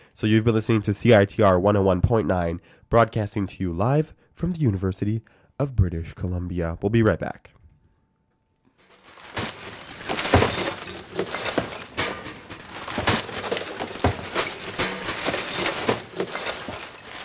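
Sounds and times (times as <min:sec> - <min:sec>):
speech: 0:00.2 - 0:07.6
rustling background: 0:08.7 - 0:17.2
compost and recyclables clunking and clinking as thrown into garbage: 0:08.8 - 0:17.2.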